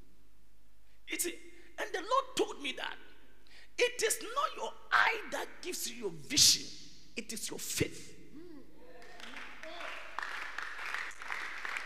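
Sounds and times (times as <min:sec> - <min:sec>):
speech: 0:01.2 - 0:01.4, 0:02.0 - 0:03.1, 0:03.8 - 0:08.2
audience clapping: 0:09.0 - 0:11.8.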